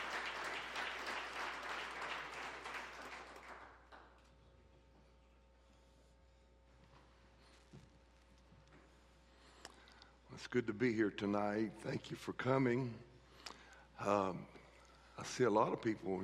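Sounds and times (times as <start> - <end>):
church revival congregation clapping: 0.0 - 4.3
low steady hum: 0.0 - 16.2
speech: 10.4 - 13.1, 14.0 - 14.6, 15.2 - 16.2.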